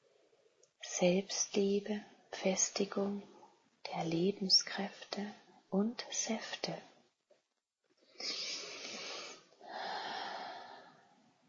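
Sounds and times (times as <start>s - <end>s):
speech: 1.0s - 3.3s, 3.9s - 6.9s, 8.2s - 8.4s
deep slow breathing during a guided chakra meditation: 8.2s - 11.2s.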